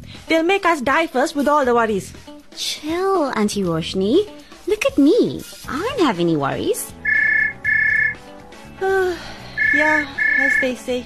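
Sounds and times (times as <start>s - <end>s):
speech: 0.3s - 7.0s, 8.8s - 11.0s
phone ringing: 7.0s - 8.3s, 9.6s - 10.8s.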